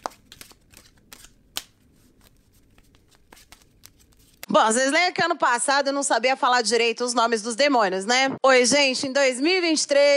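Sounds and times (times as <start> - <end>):
tarot cards shuffled by hand: 0.0 - 4.5
speech: 4.5 - 10.1.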